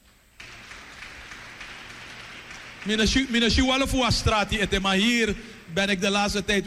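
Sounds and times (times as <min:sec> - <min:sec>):
audience applause: 0:00.4 - 0:04.5
speech: 0:02.8 - 0:06.6.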